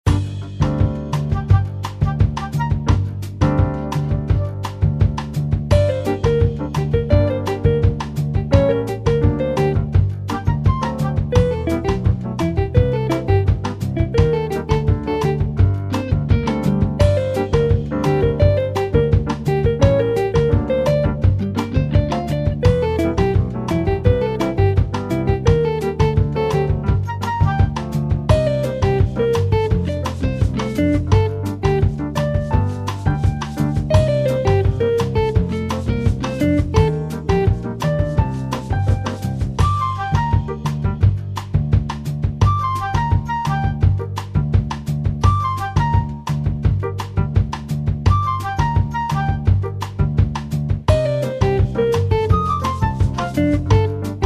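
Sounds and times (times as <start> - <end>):
FM jazz music: 0.1 - 54.2.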